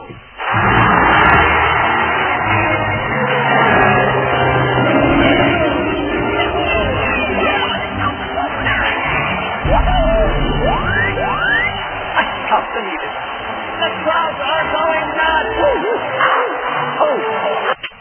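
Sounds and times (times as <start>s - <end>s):
crowd cheering: 0.3s - 17.8s.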